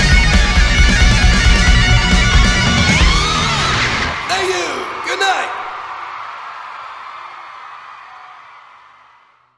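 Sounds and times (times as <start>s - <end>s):
rock music: 0.0s - 4.9s.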